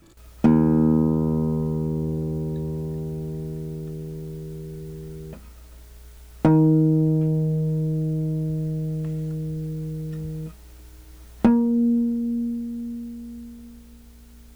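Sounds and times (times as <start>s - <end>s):
plucked string note E2: 0.0s - 14.5s.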